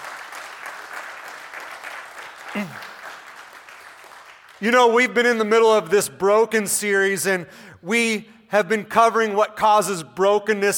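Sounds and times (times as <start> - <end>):
audience clapping: 0.0 - 5.0
person whooping: 2.5 - 2.9
speech: 2.5 - 2.9, 4.6 - 10.7.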